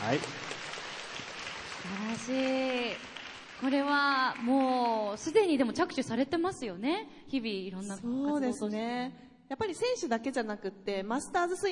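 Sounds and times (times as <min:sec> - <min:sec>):
crowd applause: 0:00.0 - 0:05.4
speech: 0:00.1 - 0:00.6, 0:01.8 - 0:11.7.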